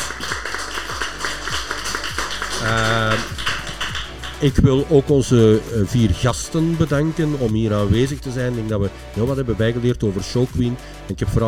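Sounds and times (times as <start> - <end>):
cheer: 0.0 - 3.5
crowd applause: 0.0 - 4.5
speech: 2.6 - 3.3, 4.4 - 11.4.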